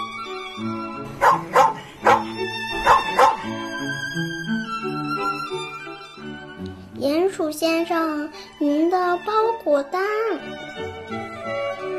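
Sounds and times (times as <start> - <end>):
soft tuneful music: 0.0 - 11.9
dog barking: 1.1 - 3.6
speech: 7.4 - 11.9.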